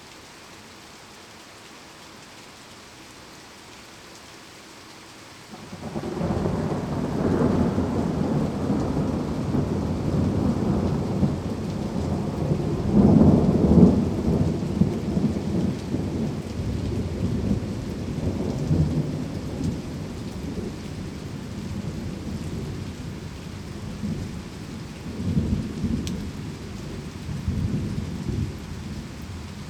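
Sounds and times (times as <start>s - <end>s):
calming rain: 0.0s - 29.6s
thunder: 5.7s - 19.8s.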